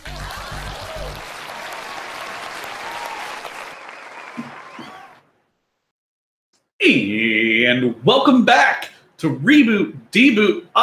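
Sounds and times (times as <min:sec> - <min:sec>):
applause: 0:00.0 - 0:05.2
speech: 0:06.9 - 0:10.8.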